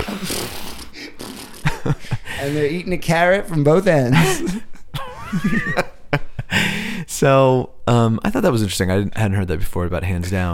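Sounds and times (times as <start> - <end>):
voice imitating a horse's snort: 0.0 - 1.7
laughter: 1.6 - 2.7, 4.0 - 6.8
speech: 1.9 - 4.7, 5.3 - 6.0, 7.2 - 10.5.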